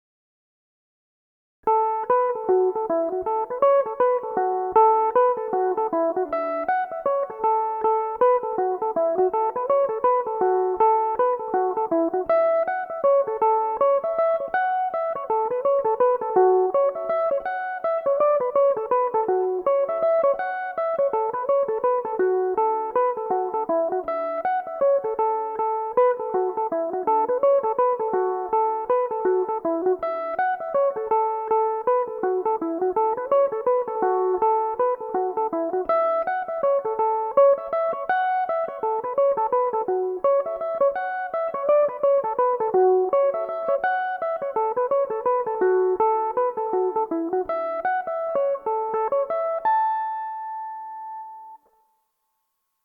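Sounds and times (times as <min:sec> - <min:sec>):
mandolin playing a reel in A major: 0:01.7 - 0:51.7.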